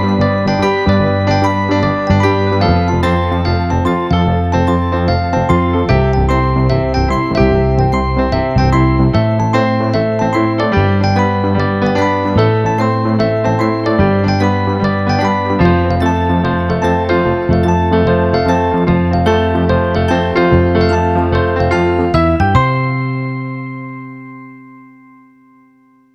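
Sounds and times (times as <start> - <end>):
happy music without drums: 0.0 - 25.6.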